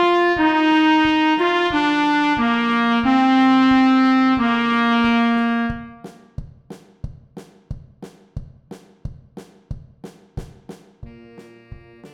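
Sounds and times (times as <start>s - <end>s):
clarinet: 0.0s - 6.1s, 11.0s - 12.1s
saxophone: 0.0s - 6.1s, 11.0s - 12.1s
trumpet: 0.0s - 6.3s, 11.0s - 12.1s.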